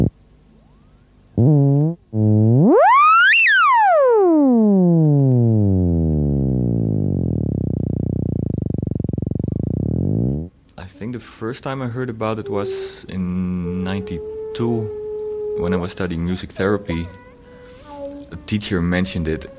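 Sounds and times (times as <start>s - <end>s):
speech: 1.4s - 1.7s, 11.4s - 15.0s, 15.6s - 17.2s, 18.5s - 19.5s
theremin tones: 2.2s - 10.5s, 12.3s - 19.5s.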